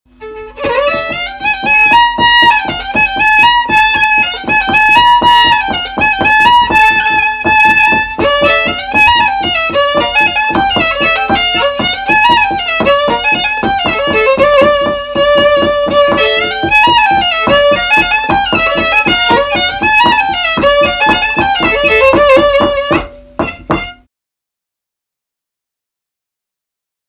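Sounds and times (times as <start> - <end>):
baroque dance piece: 0.1 - 24.0.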